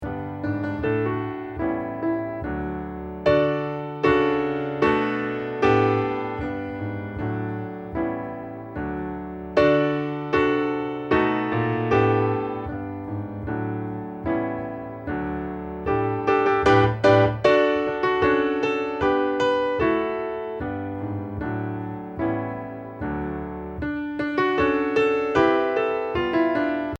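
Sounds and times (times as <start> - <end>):
musical accompaniment: 0.0 - 26.9.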